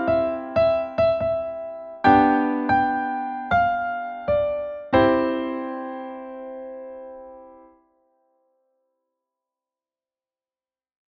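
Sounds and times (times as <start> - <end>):
Christmas song: 0.0 - 7.8.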